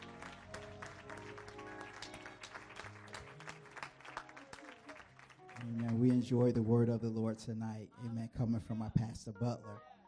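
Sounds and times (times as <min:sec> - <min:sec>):
audience hand clap applause: 0:00.0 - 0:06.8
speech: 0:05.6 - 0:09.9.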